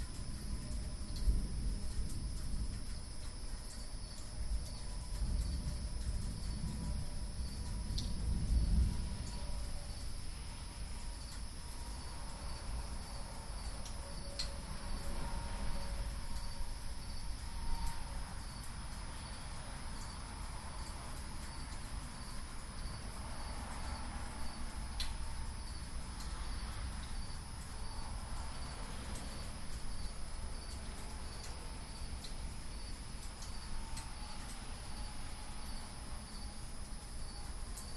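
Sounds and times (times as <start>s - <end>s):
binaural rain storm: 0.0s - 37.9s.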